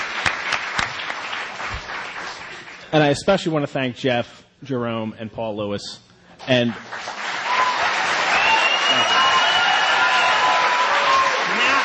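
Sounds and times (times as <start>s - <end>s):
audience applause at a library event: 0.0s - 2.9s, 6.8s - 11.8s
speech: 2.9s - 7.0s.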